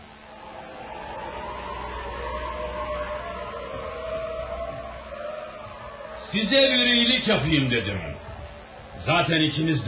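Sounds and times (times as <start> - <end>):
starving wolves howling: 0.3 - 9.8
speech: 6.3 - 8.2, 9.0 - 9.8.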